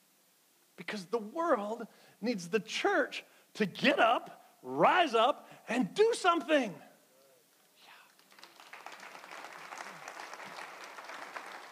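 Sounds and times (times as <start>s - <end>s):
speech: 0.8s - 6.9s
audience applause: 8.1s - 11.6s.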